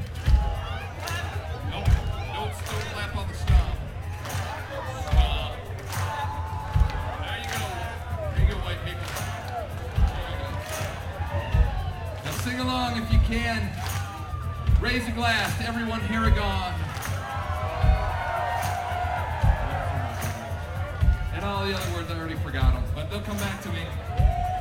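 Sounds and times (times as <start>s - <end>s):
audience stomping feet: 0.0s - 22.0s
audience clapping: 0.0s - 24.5s
speech: 14.8s - 16.7s, 22.5s - 24.2s.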